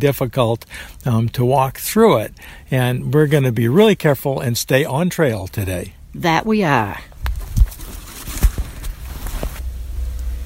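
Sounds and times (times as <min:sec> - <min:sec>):
speech: 0:00.0 - 0:07.1
armadillo rustling through saw palmetto brush: 0:07.3 - 0:09.8.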